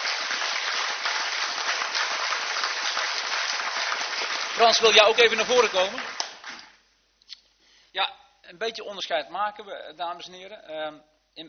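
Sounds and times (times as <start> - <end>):
applause: 0.0 - 6.8
speech: 4.6 - 6.2, 8.0 - 11.4.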